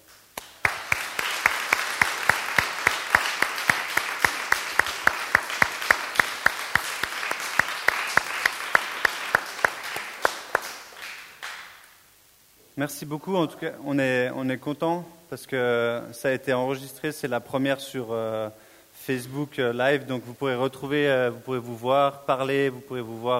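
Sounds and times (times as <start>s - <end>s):
audience applause: 0.4s - 11.8s
speech: 12.8s - 23.3s.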